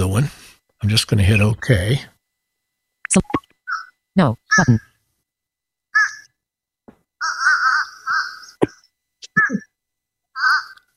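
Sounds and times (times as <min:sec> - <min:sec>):
speech: 0:00.1 - 0:02.1, 0:03.1 - 0:03.4, 0:04.2 - 0:04.9
fish crow giving short nasal hoarse calls: 0:03.6 - 0:03.9, 0:05.9 - 0:06.4, 0:07.2 - 0:08.8, 0:10.3 - 0:10.9.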